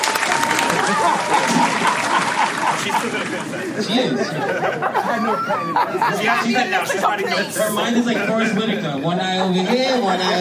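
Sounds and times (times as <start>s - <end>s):
audience applause: 0.0s - 7.4s
laughter: 0.4s - 10.4s
speech: 3.0s - 10.4s.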